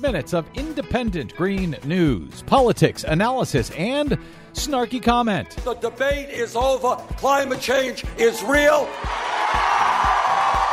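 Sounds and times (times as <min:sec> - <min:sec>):
speech: 0:00.0 - 0:10.1
crowd cheering: 0:08.4 - 0:10.7.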